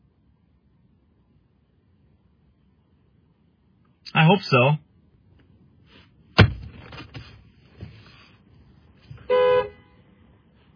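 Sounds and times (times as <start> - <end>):
speech: 4.1 - 4.8
car horn honking: 9.2 - 10.1.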